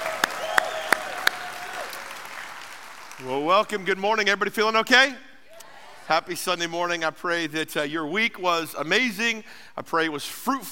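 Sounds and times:
loud claps: 0.0s - 3.5s
church congregation applauding at a Sunday morning service: 0.0s - 3.8s
speech: 3.2s - 5.3s, 6.1s - 10.7s.

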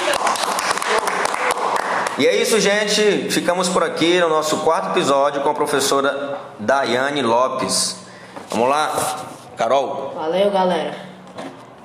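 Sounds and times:
applause: 0.0s - 2.4s
speech: 2.2s - 11.5s.

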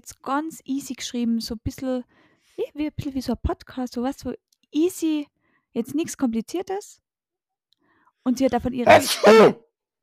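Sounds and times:
speech: 0.0s - 7.0s, 8.2s - 9.6s
sneeze: 8.9s - 9.6s.

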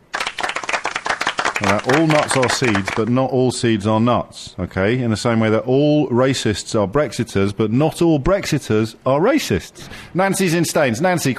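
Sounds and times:
audience applause: 0.0s - 3.1s
speech: 1.6s - 11.3s.

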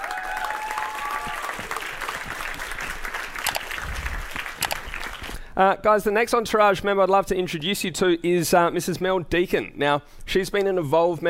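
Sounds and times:
audience applause at a business event welcoming a member onto the stage: 0.0s - 5.4s
speech: 5.6s - 11.2s.

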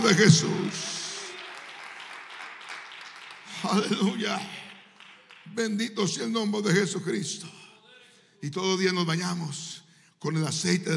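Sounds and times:
speech: 0.0s - 1.0s, 3.6s - 4.6s, 5.5s - 7.6s, 8.4s - 10.9s
audience applause: 0.0s - 5.7s.

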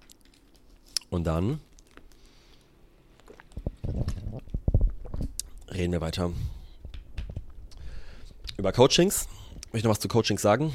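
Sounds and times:
speech: 1.1s - 1.7s, 5.8s - 6.6s, 8.6s - 10.7s
person sipping a shake and water: 2.0s - 5.7s.

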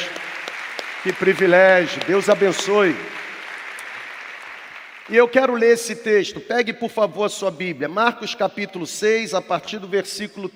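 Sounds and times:
applause: 0.0s - 6.1s
speech: 1.0s - 3.2s, 5.1s - 10.5s.

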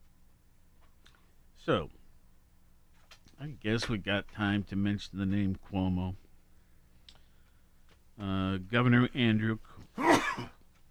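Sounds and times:
speech: 1.6s - 2.0s, 3.4s - 6.2s, 8.2s - 10.5s
sneeze: 10.0s - 10.6s.

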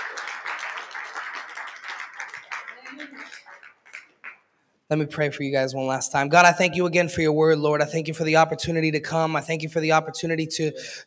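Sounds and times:
audience clapping: 0.0s - 4.5s
speech: 3.0s - 3.5s, 4.9s - 11.0s.

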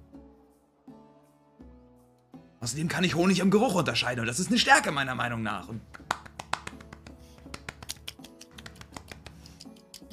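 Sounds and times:
speech: 2.6s - 6.1s
light clapping: 5.8s - 10.1s.

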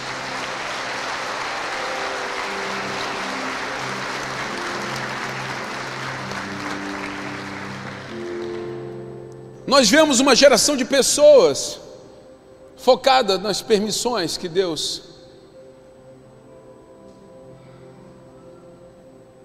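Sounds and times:
strong applause: 0.0s - 9.0s
speech: 9.7s - 11.9s, 12.8s - 15.2s.

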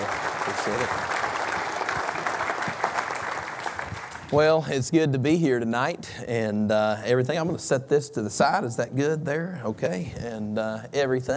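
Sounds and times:
audience applause welcoming a speaker to the stage: 0.0s - 4.5s
speech: 0.6s - 1.2s, 4.3s - 11.3s.

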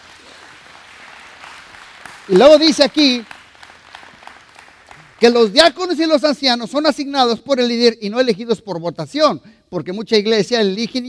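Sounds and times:
audience applause: 0.0s - 5.3s
speech: 2.3s - 3.3s, 5.2s - 11.0s.

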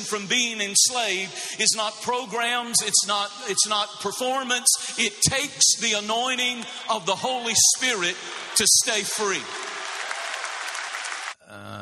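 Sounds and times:
speech: 0.0s - 9.7s
audience applause: 7.3s - 11.4s.

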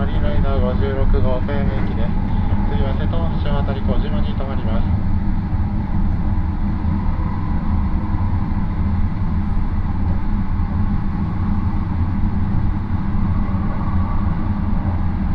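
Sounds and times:
voice announcement aboard the train: 0.0s - 5.0s
Rapid Marine Liner 40 train running on the Yosan Line from Takamatsu to Okayama: 0.0s - 15.3s.

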